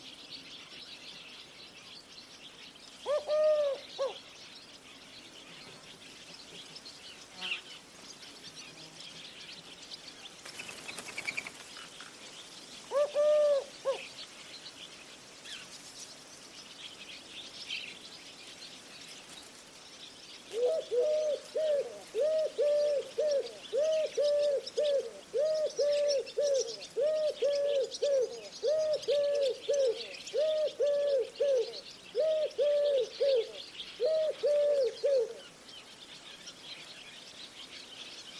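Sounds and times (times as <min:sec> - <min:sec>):
bird cooing: 0:03.0 - 0:04.2, 0:12.9 - 0:14.1, 0:20.5 - 0:35.4.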